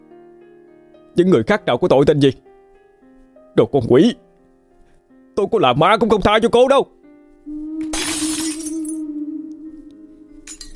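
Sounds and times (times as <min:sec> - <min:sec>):
speech: 0:01.2 - 0:02.5, 0:03.6 - 0:04.2, 0:05.4 - 0:07.0
glass shattering as belongings are smashed in a rage: 0:08.0 - 0:09.0.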